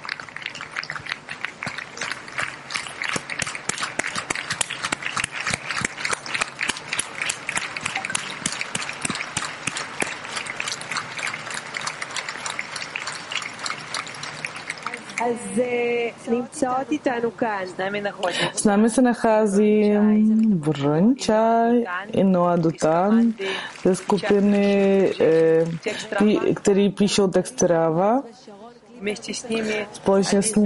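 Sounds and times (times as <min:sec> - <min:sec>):
audience applause: 0:00.0 - 0:15.4, 0:22.8 - 0:26.4
speech: 0:16.3 - 0:30.6.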